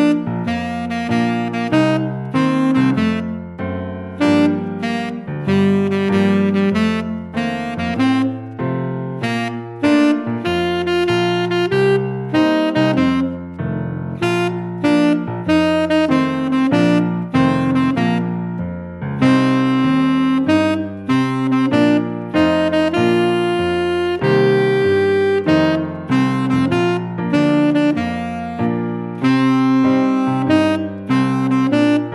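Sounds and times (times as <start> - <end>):
tenor saxophone etude: 0.0 - 32.1.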